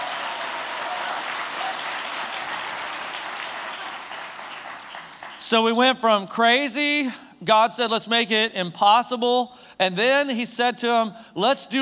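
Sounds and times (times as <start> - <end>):
audience applause: 0.0 - 5.8
speech: 5.5 - 11.8.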